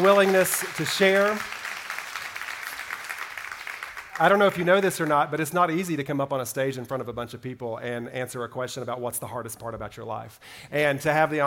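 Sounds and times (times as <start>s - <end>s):
speech: 0.0s - 1.6s, 4.2s - 11.4s
big round of applause: 0.0s - 5.2s.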